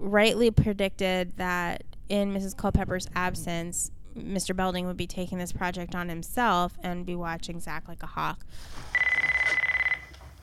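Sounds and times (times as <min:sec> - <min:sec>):
speech: 0:00.0 - 0:09.1
cell phone ringing with electronic trilling: 0:09.0 - 0:10.3.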